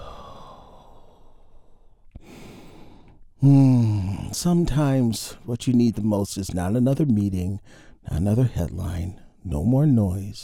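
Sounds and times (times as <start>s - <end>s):
deep inhale during guided breathing exercise: 0.0s - 4.2s, 7.6s - 8.0s
voiced exhaling sigh: 0.0s - 4.2s
speech: 3.4s - 10.4s.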